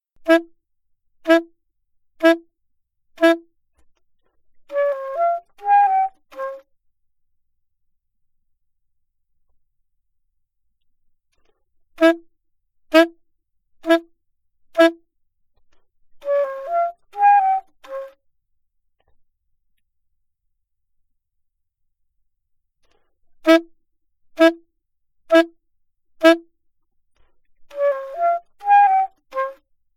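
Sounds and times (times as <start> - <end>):
alto saxophone: 0.2 - 0.5, 1.2 - 1.6, 2.2 - 2.5, 3.2 - 3.5, 4.7 - 6.7, 12.0 - 12.3, 12.9 - 13.2, 13.8 - 14.1, 14.8 - 15.0, 16.2 - 18.2, 23.4 - 23.7, 24.4 - 24.6, 25.3 - 25.6, 26.2 - 26.5, 27.7 - 29.6.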